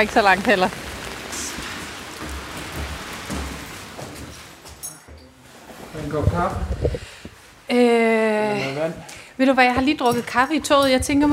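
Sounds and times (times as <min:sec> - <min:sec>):
speech: 0:00.0 - 0:00.9, 0:06.0 - 0:07.1, 0:07.7 - 0:11.3
heavy rain: 0:00.0 - 0:04.8.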